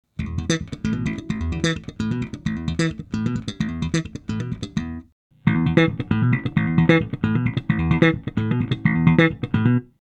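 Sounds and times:
bright boosted slap bass: 0:00.2 - 0:10.0.

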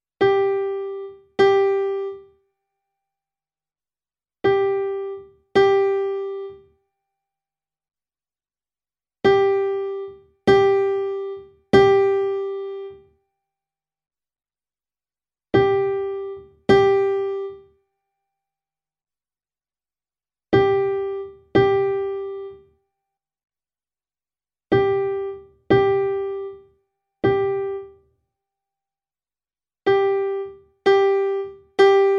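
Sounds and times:
Vivo S7 piano: 0:00.2 - 0:02.4, 0:04.4 - 0:06.7, 0:09.3 - 0:13.1, 0:15.6 - 0:17.7, 0:20.6 - 0:22.7, 0:24.7 - 0:28.1, 0:29.9 - 0:32.1.

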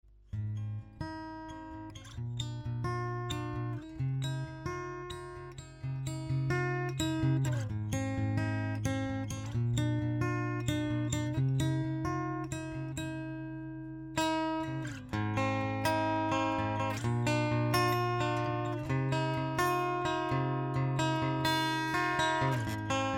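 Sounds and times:
Taylor 114ce fingerstyle guitar, direct input: 0:00.1 - 0:23.1.

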